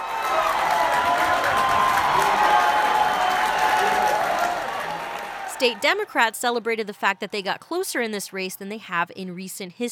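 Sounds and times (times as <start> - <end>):
crowd cheering and clapping at watch party: 0.0 - 6.4
speech: 5.6 - 9.9.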